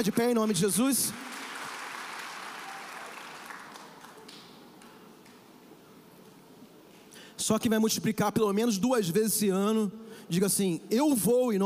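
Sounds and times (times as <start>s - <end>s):
speech: 0.0s - 1.5s, 7.5s - 11.6s
audience applauding: 0.0s - 5.4s.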